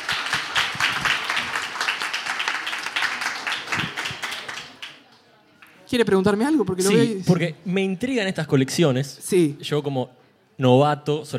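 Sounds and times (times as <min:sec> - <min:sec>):
applause: 0:00.0 - 0:05.8
speech: 0:05.9 - 0:11.3.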